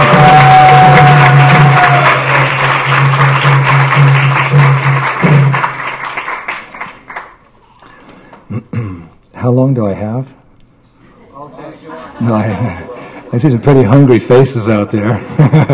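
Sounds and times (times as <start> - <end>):
crowd applauding: 0.0 - 7.4
speech: 9.6 - 10.4, 12.2 - 15.7
laughter: 11.2 - 13.6, 15.1 - 15.7.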